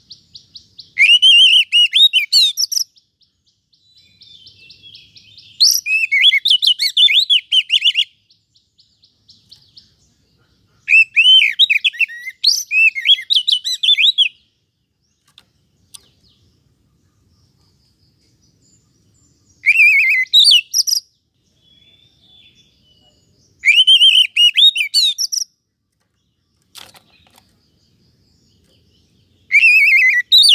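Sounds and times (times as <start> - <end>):
Oriental magpie-robin singing rich varied whistles and harsh chattering notes: 0.8 - 3.0, 4.0 - 8.1, 10.8 - 14.4, 19.6 - 25.6, 29.4 - 30.5.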